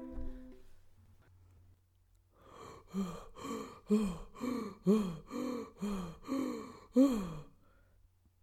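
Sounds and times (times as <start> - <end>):
person panting out of breath after running fast: 2.5 - 7.3
speech: 3.9 - 4.2, 4.8 - 5.2.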